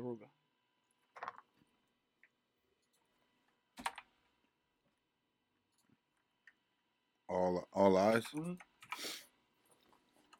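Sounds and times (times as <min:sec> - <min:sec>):
speech: 0:00.0 - 0:00.4, 0:07.3 - 0:09.1
typing on a computer keyboard: 0:03.8 - 0:04.1.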